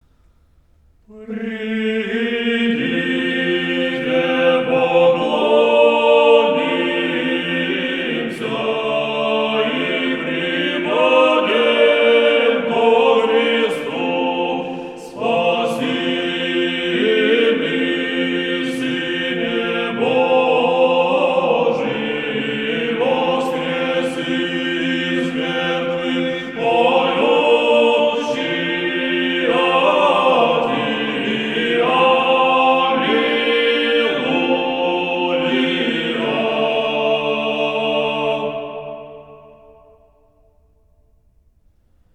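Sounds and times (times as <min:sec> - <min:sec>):
Strochnoi liturgical chant: 0:00.0 - 0:41.0.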